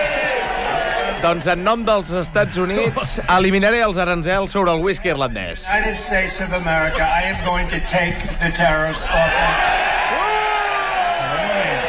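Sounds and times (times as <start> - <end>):
crowd cheering over removal of tariffs on Irish whiskey: 0.0 - 3.2, 8.8 - 11.8
speech: 1.2 - 9.8.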